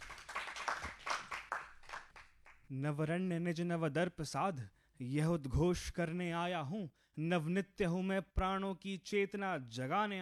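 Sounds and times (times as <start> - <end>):
audience clapping at a Hindi poetry recital: 0.0 - 2.7
speech: 2.7 - 10.2.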